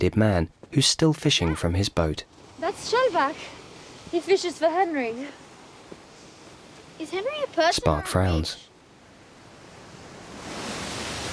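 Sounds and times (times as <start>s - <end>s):
speech: 0.0s - 5.4s, 7.0s - 8.6s
waves crashing against rocks in a cove: 2.4s - 11.3s.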